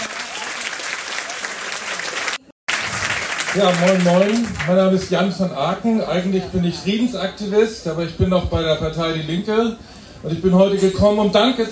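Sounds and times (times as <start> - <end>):
audience applause: 0.0 - 5.2
speech: 3.6 - 11.7.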